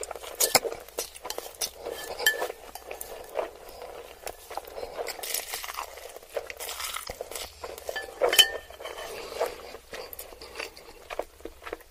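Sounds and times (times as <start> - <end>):
cutlery clinking and scraping against dishes: 0.0 - 3.3, 7.8 - 9.4
slurping and chewing ramen noodles and chicken nuggets: 0.0 - 11.8.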